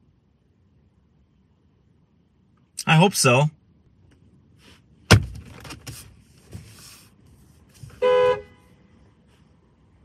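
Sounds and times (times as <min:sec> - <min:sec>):
speech: 0:02.8 - 0:03.6
car horn honking: 0:07.9 - 0:09.0.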